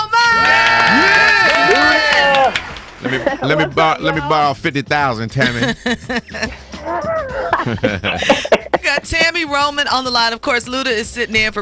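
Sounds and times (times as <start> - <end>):
studio audience cheering: 0.0 - 4.3
laughter: 0.8 - 4.0, 5.3 - 9.4
speech: 3.4 - 6.6, 7.6 - 11.5.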